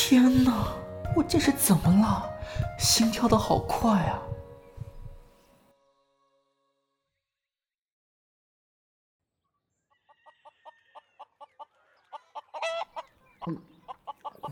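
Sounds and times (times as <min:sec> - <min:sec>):
speech: 0:00.1 - 0:04.3
chicken clucking: 0:09.9 - 0:14.5.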